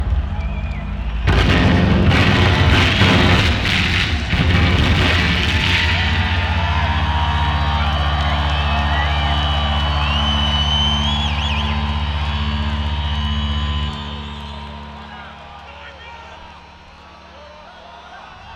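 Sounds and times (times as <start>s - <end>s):
bass solo: 0.0s - 14.9s.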